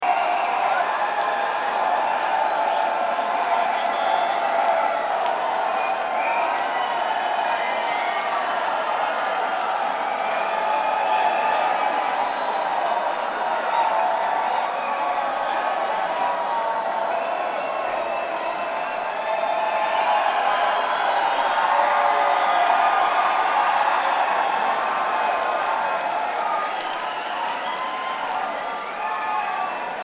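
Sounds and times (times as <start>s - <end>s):
crowd: 0.0s - 30.0s.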